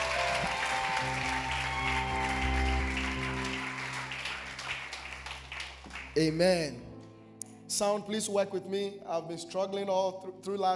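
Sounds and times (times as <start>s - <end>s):
audience clapping: 0.0s - 6.5s
speech: 6.2s - 6.9s, 7.7s - 10.7s.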